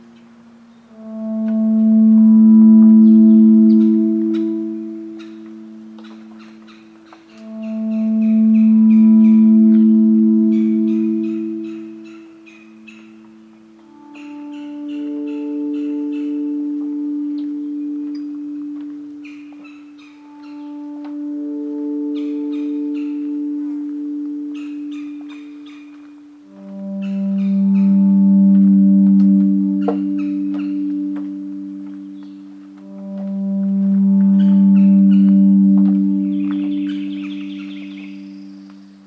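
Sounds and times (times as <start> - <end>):
birds chirping and calling at Corkscrew Swamp: 0.0 - 39.0
long low humming tones at Lettuce Lakes in Corkscrew Swamp: 0.0 - 39.0.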